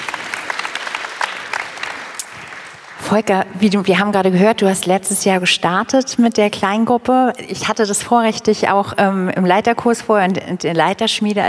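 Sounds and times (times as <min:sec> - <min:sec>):
audience applause: 0:00.0 - 0:03.2
speech: 0:03.1 - 0:11.4.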